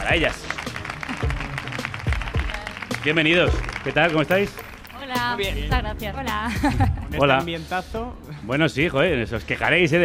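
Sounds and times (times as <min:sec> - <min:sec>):
audience applause: 0:00.0 - 0:04.9
speech: 0:00.1 - 0:00.5, 0:03.0 - 0:10.0.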